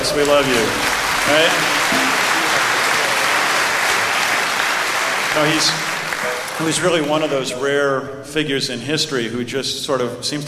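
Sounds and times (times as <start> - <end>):
audience applause: 0.0 - 7.4
speech: 0.2 - 2.0, 5.3 - 5.8, 6.6 - 10.4.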